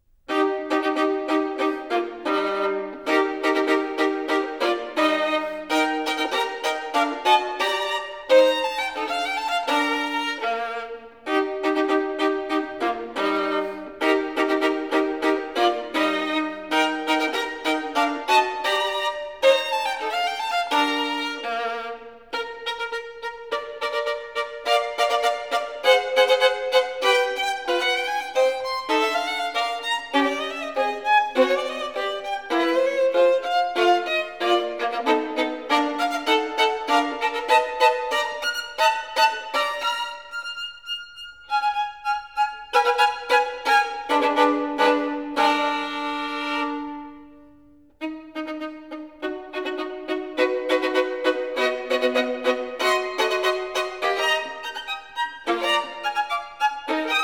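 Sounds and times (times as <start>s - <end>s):
solo violin caprice in E-flat major: 0.0s - 57.2s.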